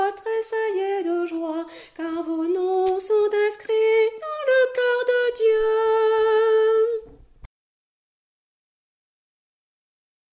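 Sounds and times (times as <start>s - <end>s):
soprano singing: 0.0s - 7.2s.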